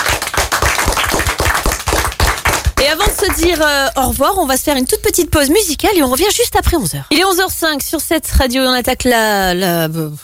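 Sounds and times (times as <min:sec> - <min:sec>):
audience applause: 0:00.0 - 0:03.6
speech: 0:03.4 - 0:10.2.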